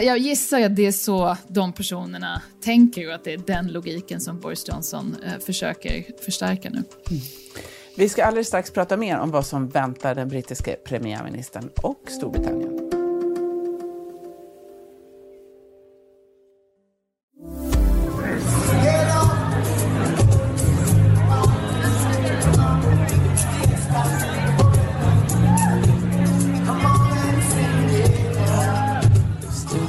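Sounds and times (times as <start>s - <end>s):
speech: 0.0s - 12.7s
sustained tonal chord: 17.4s - 19.2s
crowd of partygoers chattering and cheering: 17.8s - 29.8s.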